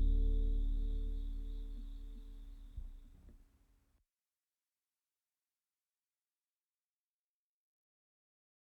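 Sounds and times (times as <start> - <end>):
acoustic chill music: 0.0 - 2.8.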